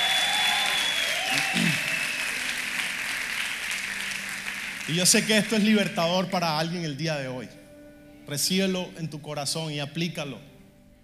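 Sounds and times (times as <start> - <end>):
audience applause: 0.0 - 5.9
speech: 4.9 - 7.6, 8.3 - 10.5.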